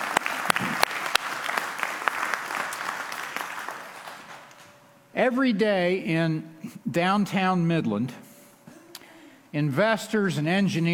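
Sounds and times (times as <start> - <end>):
audience applause: 0.0 - 4.6
speech: 5.2 - 8.2, 9.5 - 10.9.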